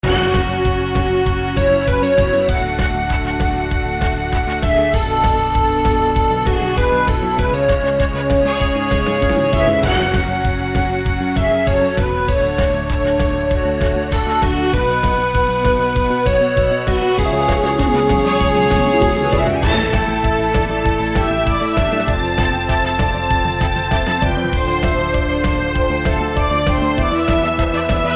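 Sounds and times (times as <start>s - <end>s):
battle mission music: 0.0s - 28.1s.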